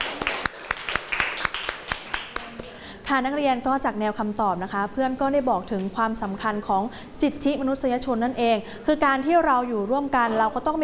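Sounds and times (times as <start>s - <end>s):
classroom small group hand clapping for a student: 0.0s - 2.8s
speech: 3.1s - 10.8s.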